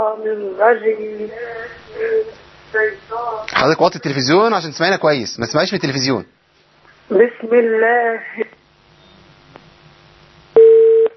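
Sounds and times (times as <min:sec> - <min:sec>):
faint low hum: 0:00.0 - 0:11.1
speech: 0:00.1 - 0:06.4, 0:07.1 - 0:08.6
telephone busy tone after a call is cut off: 0:10.6 - 0:11.1.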